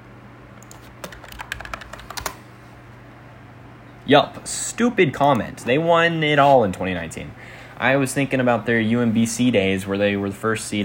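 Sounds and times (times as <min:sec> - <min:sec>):
typing on a computer keyboard: 0:00.6 - 0:02.4
speech: 0:04.1 - 0:10.8.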